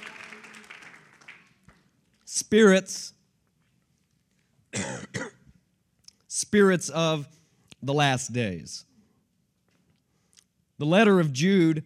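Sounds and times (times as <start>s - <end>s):
audience clapping hands: 0.0s - 2.1s
speech: 2.3s - 3.2s, 6.4s - 8.9s, 10.8s - 11.8s.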